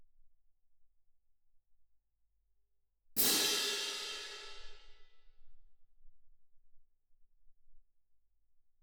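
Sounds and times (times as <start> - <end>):
percussion: 3.2 - 5.2.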